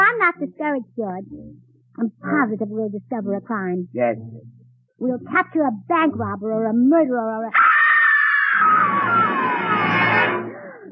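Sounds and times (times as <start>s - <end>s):
speech: 0.3s - 7.7s, 8.6s - 9.3s
woman screaming: 7.5s - 10.4s.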